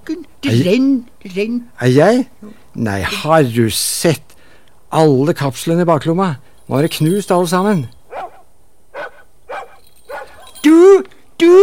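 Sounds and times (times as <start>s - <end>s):
speech: 0.1s - 4.3s, 4.9s - 8.0s, 10.8s - 11.6s
dog barking: 8.1s - 10.6s.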